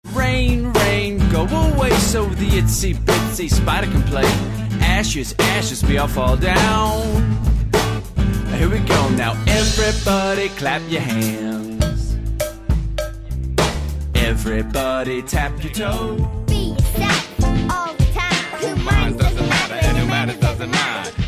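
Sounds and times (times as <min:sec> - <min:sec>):
children's music: 0:00.0 - 0:21.2.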